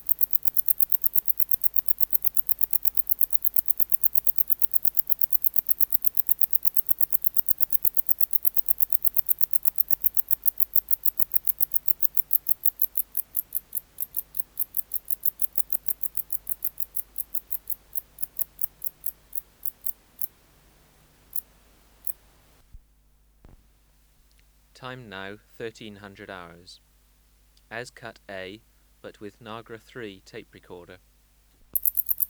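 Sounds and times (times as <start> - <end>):
wart-biter bush cricket ticking song: 0.0 - 20.4, 21.2 - 22.3, 31.8 - 32.2
faint low hum: 0.0 - 32.2
speech: 24.8 - 26.9, 27.7 - 31.1.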